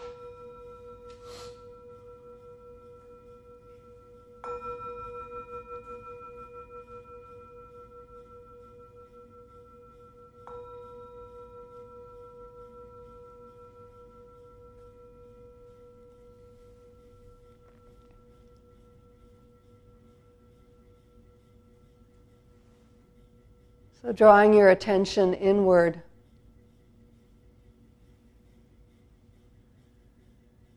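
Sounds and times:
meditation bell ringing: 0.0s - 23.9s
speech: 24.0s - 26.1s.

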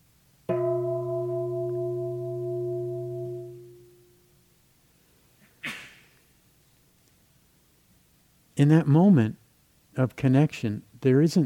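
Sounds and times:
meditation bell ringing: 0.5s - 4.3s
speech: 8.6s - 9.4s, 10.0s - 11.4s.

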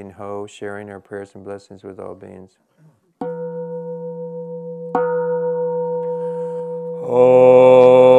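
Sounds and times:
speech: 0.0s - 2.7s, 7.1s - 8.0s
meditation bell being struck: 3.2s - 7.6s.

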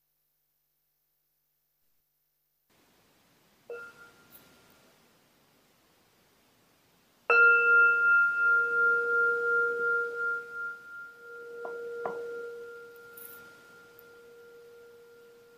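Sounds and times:
meditation bell ringing: 3.7s - 4.5s, 7.3s - 15.5s.

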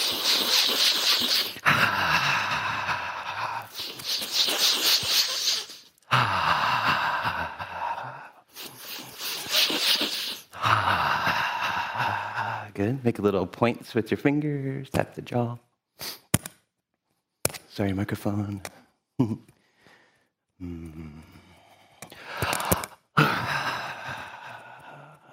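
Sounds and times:
people breathing in through the nose in a guided breathing exercise: 0.0s - 12.8s, 19.6s - 25.3s
speech: 12.8s - 15.7s, 17.8s - 19.6s, 20.6s - 21.3s.

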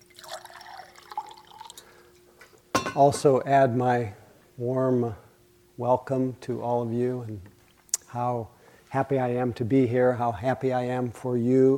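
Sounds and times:
water being poured: 0.0s - 2.0s
speech: 2.9s - 5.2s, 5.8s - 7.5s, 8.1s - 11.7s.

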